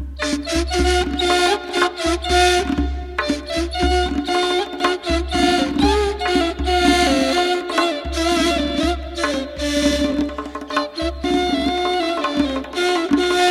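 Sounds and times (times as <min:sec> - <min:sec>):
ney flute: 0:00.1 - 0:13.5.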